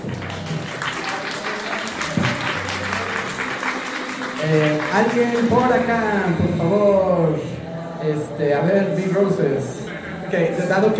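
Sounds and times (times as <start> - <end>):
audience applause: 0.0 - 6.1
speech: 4.4 - 10.9.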